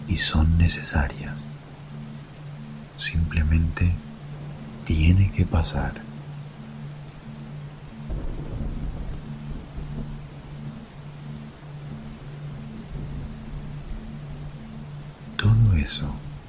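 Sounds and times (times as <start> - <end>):
steady rain: 0.0 - 16.4
speech: 0.2 - 1.5, 3.0 - 4.1, 4.9 - 6.1, 15.8 - 16.3
rolling thunder: 8.1 - 10.5.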